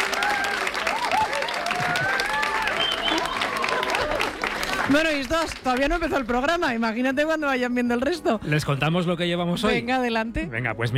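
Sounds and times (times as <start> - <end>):
studio audience applause: 0.0 - 6.4
speech: 4.9 - 10.9.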